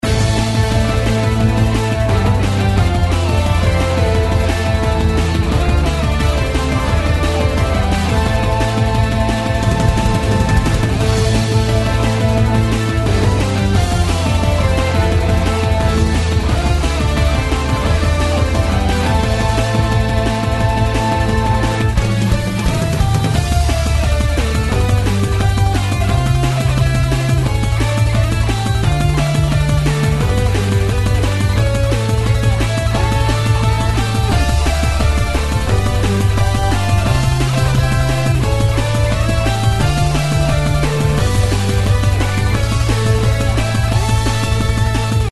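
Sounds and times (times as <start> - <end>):
fight theme music loop: 0.0 - 45.3.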